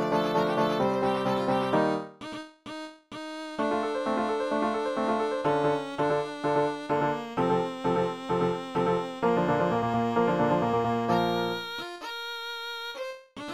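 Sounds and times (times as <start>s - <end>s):
violin: 0.0s - 2.1s, 3.6s - 12.0s.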